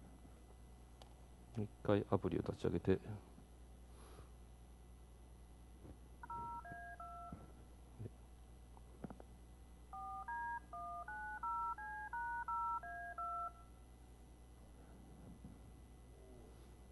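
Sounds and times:
speech: 1.6s - 3.3s
DTMF telephone dial tones played back from a web file: 6.2s - 7.3s, 9.9s - 13.6s.

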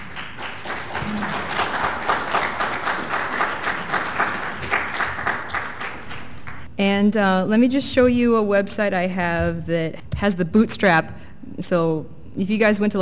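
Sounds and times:
audience applause: 0.0s - 6.7s
speech: 6.8s - 13.0s.

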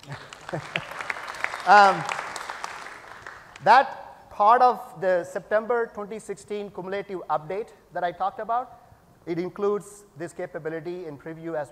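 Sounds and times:
audience applause: 0.0s - 3.6s
speech: 0.1s - 0.8s, 1.6s - 2.2s, 3.6s - 11.6s.

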